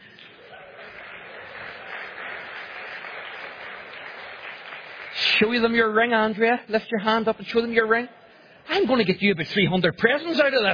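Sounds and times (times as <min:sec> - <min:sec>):
audience applause: 0:00.0 - 0:05.8
speech: 0:05.4 - 0:10.7.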